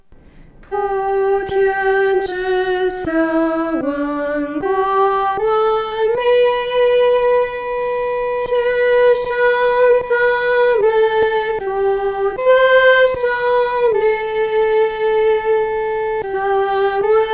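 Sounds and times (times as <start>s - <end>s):
solo singing: 0.7s - 17.3s.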